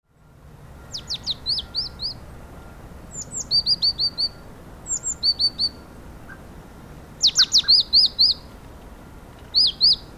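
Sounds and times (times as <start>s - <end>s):
Great tit calls: 0.8s - 6.5s, 7.2s - 8.5s, 9.5s - 10.1s.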